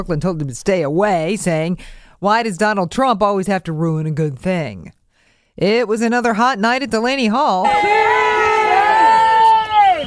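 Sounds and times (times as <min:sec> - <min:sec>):
speech: 0:00.0 - 0:05.0, 0:05.6 - 0:08.1
crowd commotion outside facility: 0:07.6 - 0:10.0
protesters shouting: 0:07.6 - 0:10.0.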